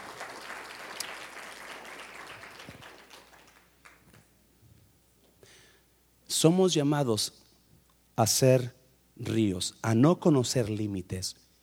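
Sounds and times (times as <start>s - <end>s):
church audience applause: 0.0s - 4.2s
speech: 6.4s - 7.4s, 8.2s - 11.5s.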